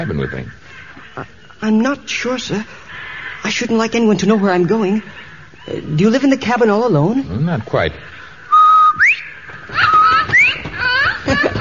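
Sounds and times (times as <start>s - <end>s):
laughter: 0.0s - 1.6s, 9.7s - 11.5s
speech: 0.0s - 8.2s, 9.0s - 10.0s
parrot whistling: 8.5s - 10.6s.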